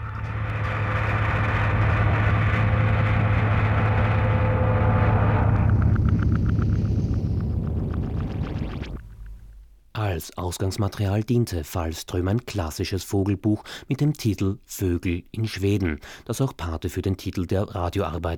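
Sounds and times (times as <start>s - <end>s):
rocket launching: 0.0s - 9.6s
speech: 10.2s - 18.3s.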